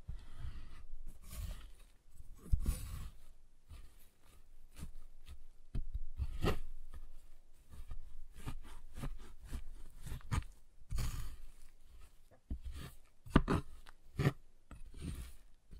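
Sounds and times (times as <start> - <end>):
giant chocolate bar cutting: 0.2 - 3.7, 4.7 - 7.0, 7.6 - 15.7.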